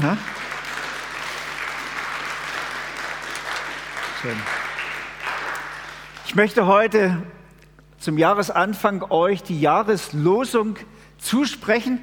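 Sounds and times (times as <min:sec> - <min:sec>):
speech: 0:00.0 - 0:00.4, 0:04.2 - 0:04.6, 0:06.3 - 0:07.4, 0:08.0 - 0:12.0
audience applauding: 0:00.0 - 0:06.4.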